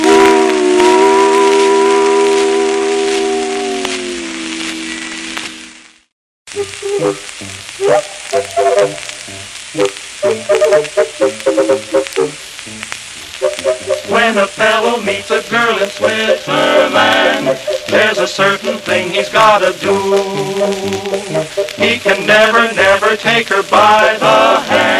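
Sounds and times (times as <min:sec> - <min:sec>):
steam train whistle: 0:00.0 - 0:05.2, 0:06.5 - 0:24.9
rhythmic tonal bursts: 0:06.5 - 0:24.9
speech: 0:14.4 - 0:20.2, 0:21.8 - 0:24.9.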